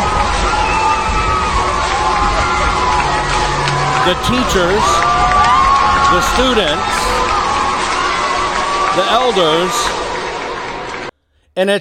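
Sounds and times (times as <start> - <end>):
high whoops: 0.0 - 10.0
large crowd cheering and shouting in a worship center: 0.0 - 11.1
speech: 4.0 - 5.0, 6.1 - 7.2, 9.0 - 10.0, 11.6 - 11.7.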